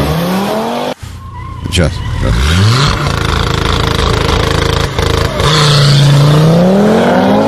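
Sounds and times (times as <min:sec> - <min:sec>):
old Audi TT RS engine growling: 0:00.0 - 0:07.4
speech: 0:01.7 - 0:03.2.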